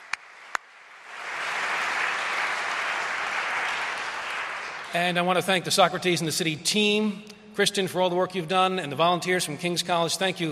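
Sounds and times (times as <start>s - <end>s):
audience round of applause: 0.0s - 5.0s
speech: 4.9s - 10.5s.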